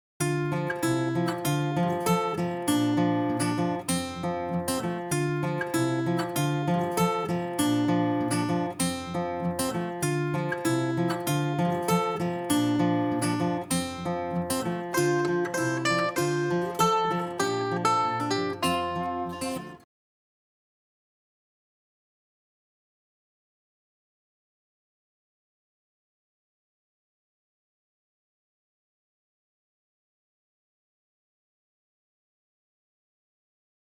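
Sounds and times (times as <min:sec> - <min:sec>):
instrumental music: 0:00.2 - 0:19.8.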